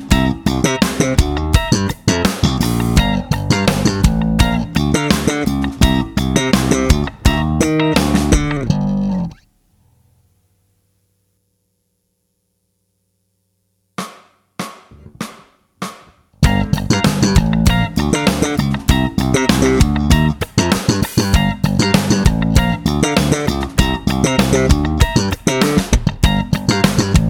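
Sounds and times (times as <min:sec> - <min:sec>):
practice music track: 0:00.0 - 0:09.4, 0:16.4 - 0:27.2.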